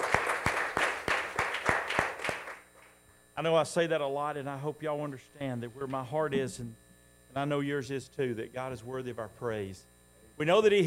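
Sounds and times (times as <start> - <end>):
audience hand clapping: 0.0 - 2.9
speech: 3.4 - 6.8, 7.4 - 10.8.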